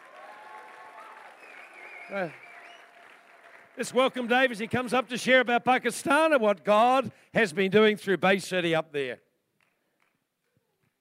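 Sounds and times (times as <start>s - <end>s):
audience applause: 0.0s - 5.5s
speech: 2.1s - 2.5s, 3.8s - 9.2s.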